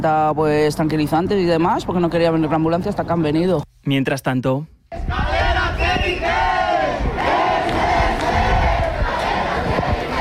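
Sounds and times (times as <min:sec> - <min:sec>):
speech: 0:00.0 - 0:05.3
crowd of protesters shouting and chanting: 0:04.9 - 0:10.1.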